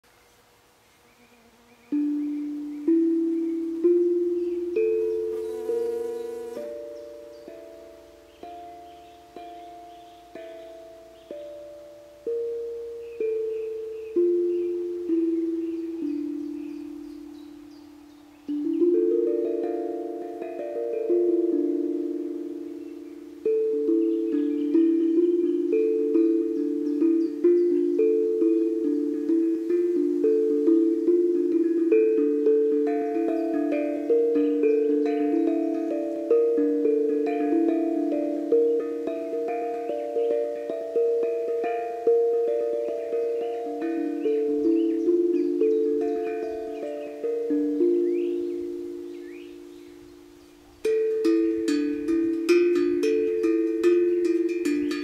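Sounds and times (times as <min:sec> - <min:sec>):
pentatonic melody: 0:00.0 - 0:55.0.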